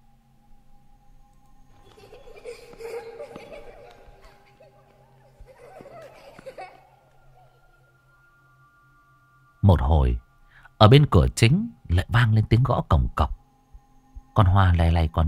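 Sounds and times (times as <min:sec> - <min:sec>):
children giggling: 0:01.7 - 0:08.0
speech: 0:09.7 - 0:10.2, 0:10.8 - 0:13.4, 0:14.4 - 0:15.2.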